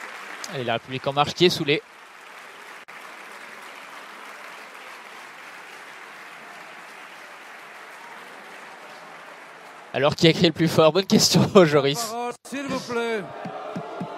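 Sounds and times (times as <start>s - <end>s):
standing ovation applause from a parliamentary majority for the labour minister: 0.0s - 11.2s, 13.2s - 14.1s
speech: 0.5s - 2.0s, 10.0s - 13.6s.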